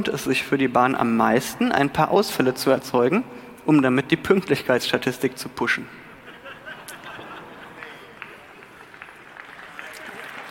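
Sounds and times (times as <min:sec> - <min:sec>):
speech: 0:00.0 - 0:06.0
laughter: 0:06.0 - 0:09.0
audience clapping: 0:06.9 - 0:10.5.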